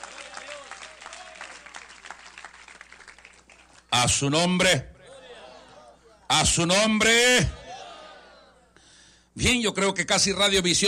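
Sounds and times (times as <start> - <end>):
audience applauding loudly: 0.0 - 3.9
speech: 4.0 - 4.9, 6.4 - 7.6, 9.4 - 10.8.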